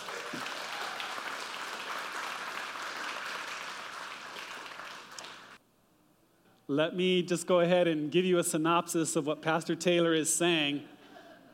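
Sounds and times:
audience applause: 0.0 - 5.6
speech: 6.7 - 11.0.

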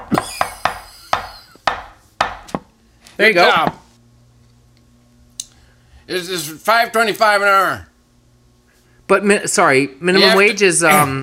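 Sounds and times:
hammer striking a nail: 0.0 - 2.7
speech: 3.2 - 3.8, 6.1 - 7.9, 9.1 - 11.2.

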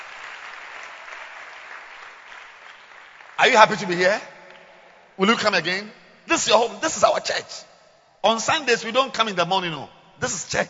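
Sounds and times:
audience clapping hands: 0.0 - 5.2
speech: 3.4 - 4.4, 5.2 - 10.6.

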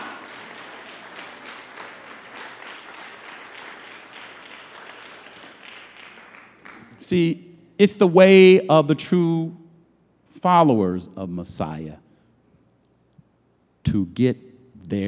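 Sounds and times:
audience clapping: 0.0 - 7.1
speech: 7.1 - 9.6, 10.4 - 12.0, 13.9 - 15.0.

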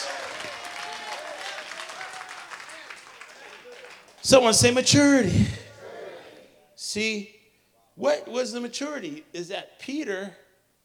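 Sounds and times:
crowd clapping: 0.0 - 5.8
voices shouting and cheering: 0.0 - 6.6
speech: 4.2 - 5.6, 6.9 - 7.4, 8.0 - 10.4.

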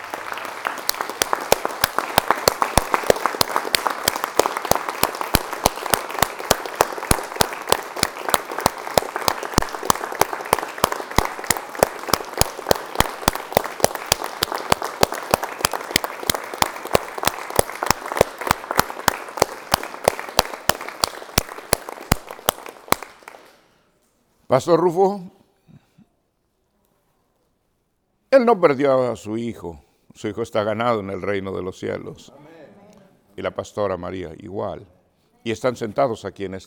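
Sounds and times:
audience applause: 0.0 - 23.6
speech: 24.5 - 25.3, 28.4 - 32.3, 33.4 - 36.6.

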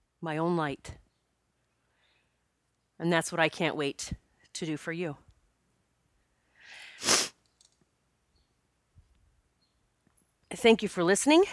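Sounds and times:
speech: 0.2 - 1.0, 3.0 - 5.2, 10.6 - 11.5
person sniffling: 6.7 - 7.4.

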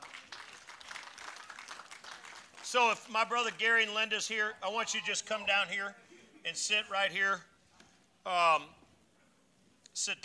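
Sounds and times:
audience applause: 0.0 - 3.0
speech: 2.7 - 7.5, 8.2 - 8.8, 10.0 - 10.2.

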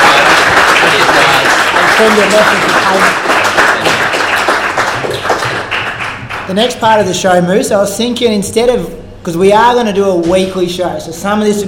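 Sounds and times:
round of applause: 0.0 - 6.6
speech: 2.0 - 3.3, 6.5 - 11.6.

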